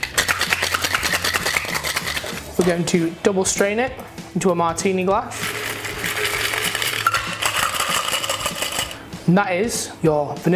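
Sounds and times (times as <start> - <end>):
cocktail shaker full of ice shaken vigorously: 0.0 - 2.7, 5.4 - 9.0
speech: 2.6 - 5.5, 9.3 - 10.5.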